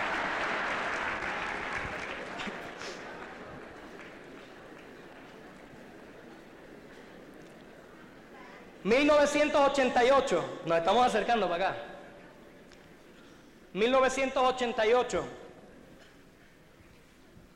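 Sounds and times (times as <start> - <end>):
audience applause: 0.0 - 7.2
speech: 8.8 - 11.9, 13.8 - 15.4.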